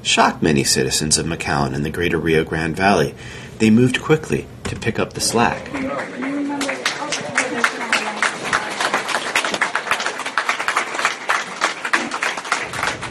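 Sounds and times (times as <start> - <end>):
speech: 0.0 - 6.4
voices calling out and chattering: 4.7 - 10.1
volunteers applauding arriving migrants: 5.2 - 13.1.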